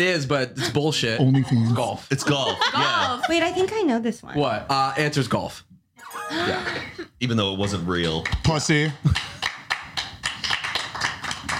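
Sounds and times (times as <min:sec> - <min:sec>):
speech: 0:00.0 - 0:05.7, 0:06.3 - 0:09.3
golf clap, slow quiet sarcastic clapping: 0:07.6 - 0:11.5.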